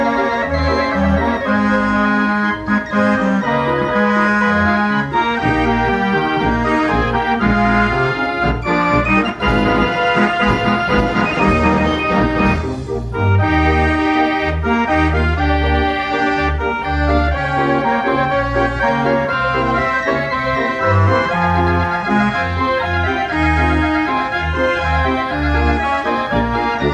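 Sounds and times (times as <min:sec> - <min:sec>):
87 key fairground organ playing: 0:00.0 - 0:26.9.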